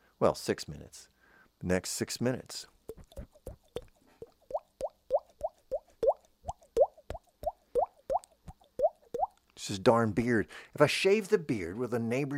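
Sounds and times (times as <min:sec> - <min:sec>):
speech: 0:00.2 - 0:03.3, 0:09.6 - 0:12.3
raindrop sounds tapped on cheek: 0:02.9 - 0:09.4.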